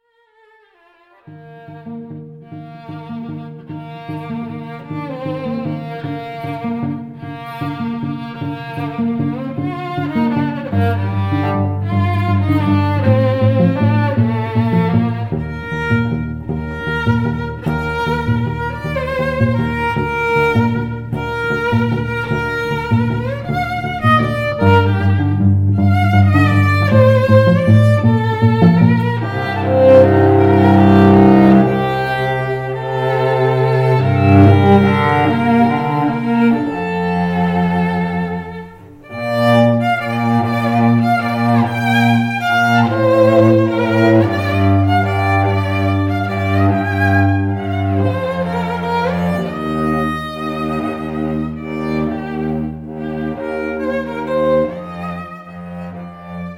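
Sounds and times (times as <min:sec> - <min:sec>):
string duo: 0:00.4 - 0:56.5.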